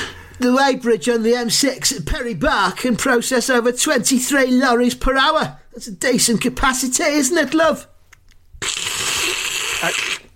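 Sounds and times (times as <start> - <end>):
speech: 0.4 - 7.9
slurping hot chocolate: 8.6 - 10.3.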